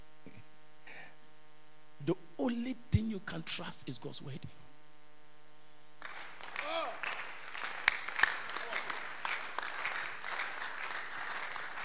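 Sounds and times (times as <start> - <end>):
speech: 2.1 - 4.7
audience clapping: 6.0 - 11.8.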